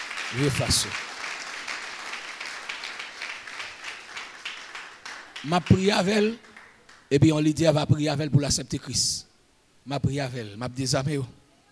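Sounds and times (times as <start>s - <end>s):
church audience applauding: 0.0s - 7.1s
speech: 0.3s - 1.1s, 5.4s - 6.5s, 7.1s - 11.4s.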